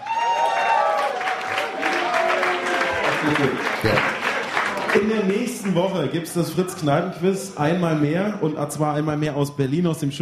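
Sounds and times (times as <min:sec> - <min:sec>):
studio audience applause: 0:00.0 - 0:06.1
speech: 0:03.3 - 0:04.2, 0:04.9 - 0:10.1.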